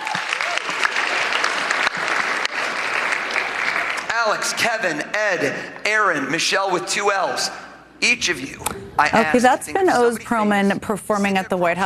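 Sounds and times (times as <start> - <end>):
audience applause: 0.0 - 4.8
speech: 4.2 - 11.8.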